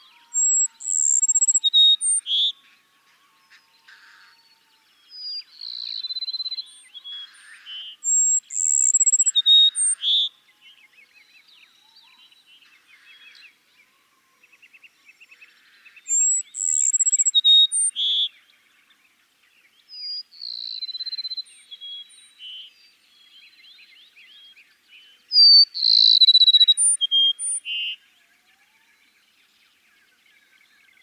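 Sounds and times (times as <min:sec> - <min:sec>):
Cassin's sparrow song: 0:00.0 - 0:31.0
other birds twittering: 0:00.3 - 0:02.2, 0:08.1 - 0:10.2, 0:15.6 - 0:18.0.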